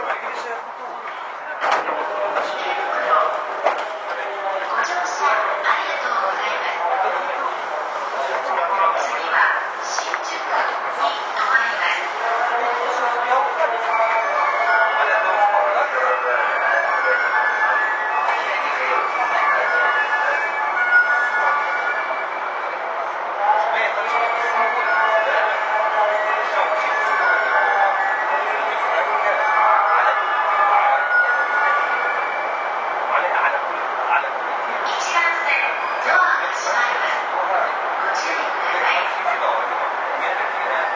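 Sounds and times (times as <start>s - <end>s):
Saikyo Line JR E233 series train running: 0.0s - 40.9s
voices: 0.0s - 40.9s.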